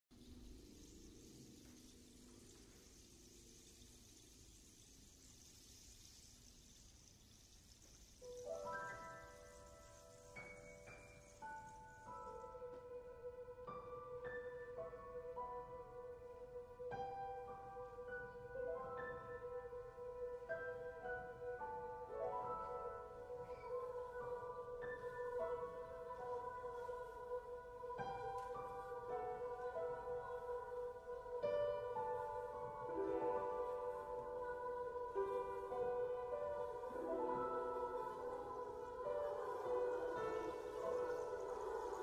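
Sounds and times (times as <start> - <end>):
rainstorm: 0.1 - 42.0.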